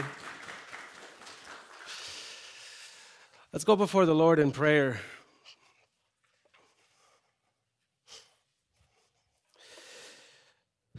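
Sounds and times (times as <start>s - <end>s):
audience applause: 0.0s - 2.4s
speech: 3.6s - 5.2s.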